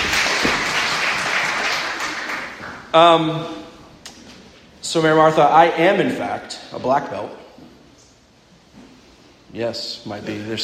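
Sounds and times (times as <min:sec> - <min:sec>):
audience round of applause: 0:00.0 - 0:02.9
speech: 0:02.9 - 0:03.6, 0:04.9 - 0:07.4, 0:09.5 - 0:10.6.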